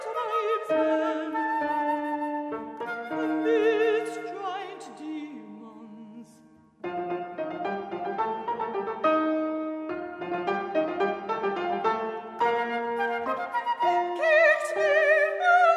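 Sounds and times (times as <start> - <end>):
flute: 0.0 - 4.7, 11.8 - 15.7
mezzo-soprano singing: 0.0 - 9.6, 10.5 - 15.7
piano: 0.0 - 15.7.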